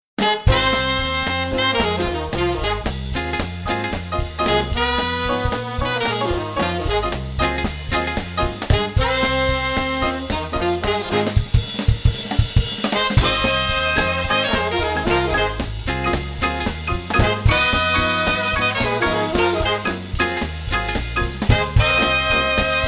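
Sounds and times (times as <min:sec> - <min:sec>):
swing orchestra playing: 0:00.2 - 0:22.8.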